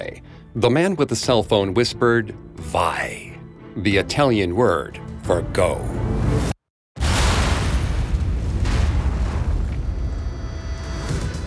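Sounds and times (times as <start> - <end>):
speech: 0.0 - 3.2, 3.8 - 6.5
TNT explosion under a road: 7.0 - 11.4.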